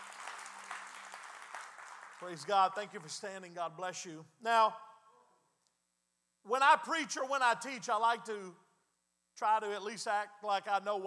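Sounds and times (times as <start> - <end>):
audience clapping hands: 0.0 - 3.3
speech: 2.2 - 4.9, 6.4 - 8.6, 9.4 - 11.0.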